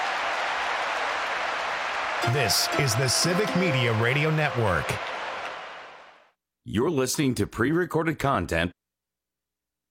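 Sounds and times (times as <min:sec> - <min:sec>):
Wisconsin crowd cheering on Bucky Badger: 0:00.0 - 0:06.3
speech: 0:02.2 - 0:05.1, 0:06.6 - 0:08.8.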